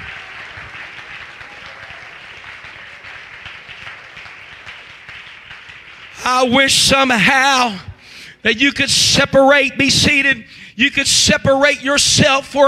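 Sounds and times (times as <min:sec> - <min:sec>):
crowd clapping hands: 0:00.0 - 0:07.7
speech: 0:06.3 - 0:12.6.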